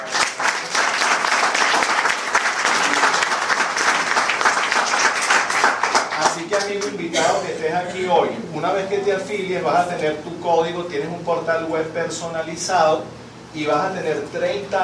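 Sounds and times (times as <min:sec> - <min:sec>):
audience applause: 0:00.0 - 0:06.9
speech: 0:06.6 - 0:14.8.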